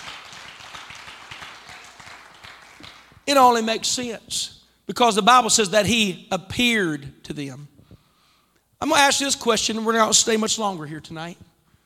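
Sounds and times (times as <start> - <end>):
crowd clapping: 0.0 - 3.2
speech: 3.3 - 7.7, 8.8 - 11.5.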